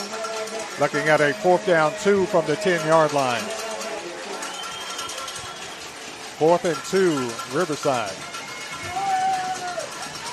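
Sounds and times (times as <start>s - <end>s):
football crowd roaring: 0.0s - 10.3s
speech: 0.8s - 3.6s, 6.4s - 8.3s
thin sustained whistle-like tone: 4.4s - 5.8s.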